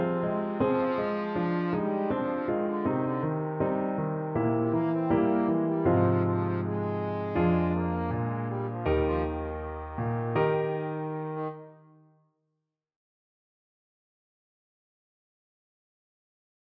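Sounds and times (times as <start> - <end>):
trombone: 0.0 - 11.7.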